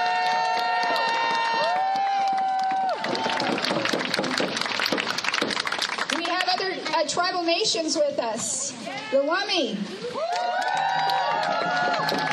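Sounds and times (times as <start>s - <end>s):
applause: 0.0s - 7.1s, 10.2s - 12.3s
speech: 7.0s - 10.6s.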